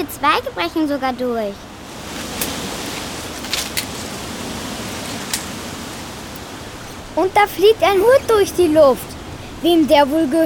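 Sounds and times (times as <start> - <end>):
speech: 0.0 - 1.7, 7.2 - 10.4
stormy wind roaring: 1.6 - 10.0.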